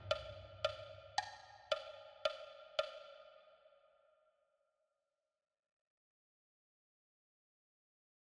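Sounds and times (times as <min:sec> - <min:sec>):
marching bass drum: 0:00.0 - 0:00.7.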